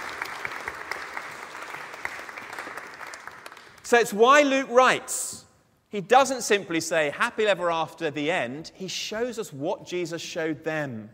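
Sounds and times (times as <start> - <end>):
audience applause: 0.0 - 3.9
speech: 3.9 - 11.1.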